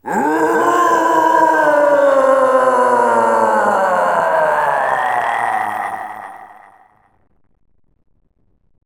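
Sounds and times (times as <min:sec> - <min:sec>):
guardian roaring: 0:00.0 - 0:06.9.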